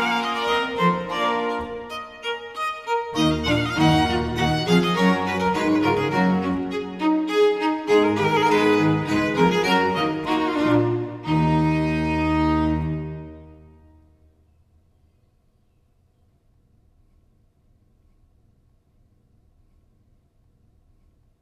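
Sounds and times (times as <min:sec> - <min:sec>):
sonata gavotte in E minor: 0:00.0 - 0:14.4.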